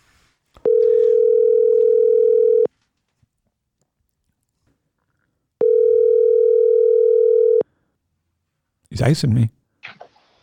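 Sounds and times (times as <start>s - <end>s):
telephone tones while a call is being placed: 0.6s - 2.7s, 5.6s - 7.6s
speech: 9.0s - 9.6s.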